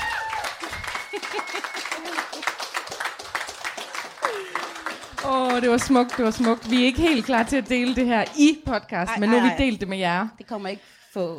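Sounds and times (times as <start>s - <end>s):
audience applause: 0.0s - 8.4s
laughter: 0.9s - 2.6s
speech: 5.2s - 11.3s.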